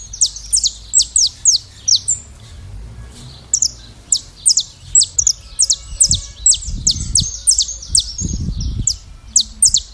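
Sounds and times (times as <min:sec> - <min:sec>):
saffron finch Sicalis flaveola giving downward-sweeping chips: 0:00.0 - 0:02.3, 0:03.4 - 0:09.9.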